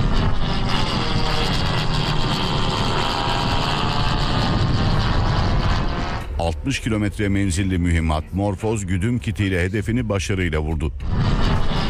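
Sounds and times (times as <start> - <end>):
Akinci combat drone engine roaring on takeoff from a runway in Çorlu, Tekirdağ: 0.0 - 7.8, 10.9 - 11.8
speech: 6.6 - 11.2.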